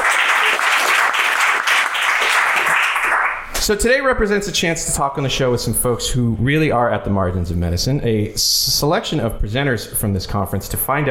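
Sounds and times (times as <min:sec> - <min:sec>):
applause: 0:00.0 - 0:03.5
speech: 0:03.7 - 0:11.0.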